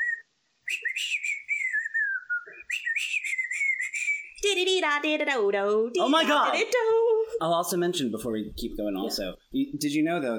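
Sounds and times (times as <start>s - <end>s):
person whistling a quick high melody: 0.0s - 4.4s
speech: 4.4s - 10.3s.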